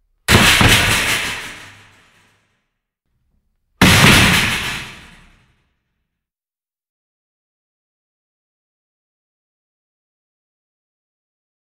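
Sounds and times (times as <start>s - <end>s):
metal shelf: 0.3s - 2.1s, 3.8s - 5.3s.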